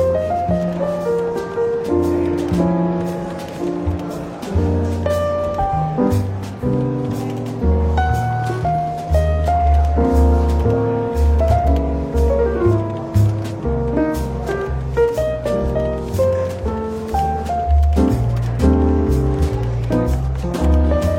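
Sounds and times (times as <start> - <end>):
faint murmur of voices in a London bookshop café: 0.0 - 21.1
soft relaxed jazz in a London bookshop café: 0.0 - 21.1
walking bass line: 0.0 - 21.1.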